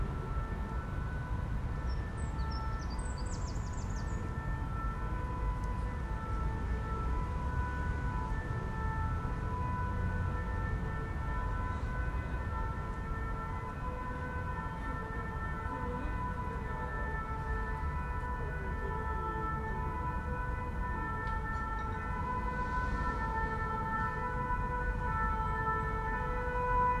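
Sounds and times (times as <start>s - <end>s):
siren in a park: 0.0s - 26.9s.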